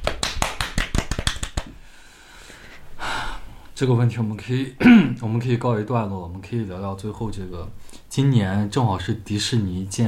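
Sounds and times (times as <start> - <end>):
applause: 0.0 - 1.7
speech: 3.8 - 10.0.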